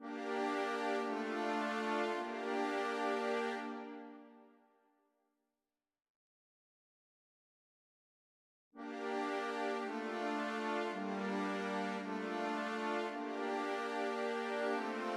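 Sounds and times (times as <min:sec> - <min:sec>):
interactive music: 0:00.0 - 0:05.1, 0:08.8 - 0:15.1.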